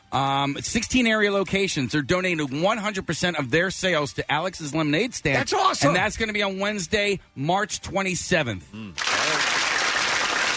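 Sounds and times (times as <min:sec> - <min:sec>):
speech: 0:00.1 - 0:09.4
crowd applause: 0:09.0 - 0:10.5.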